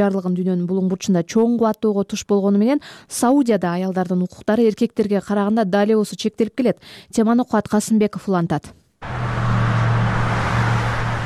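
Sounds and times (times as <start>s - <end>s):
speech: 0.0s - 9.4s
car traffic on the streets of Saudi Arabia: 9.0s - 11.2s.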